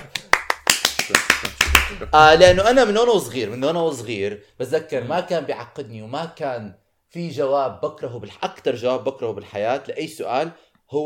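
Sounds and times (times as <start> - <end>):
rhythmic hand clapping: 0.0 - 2.5
speech: 1.1 - 11.0.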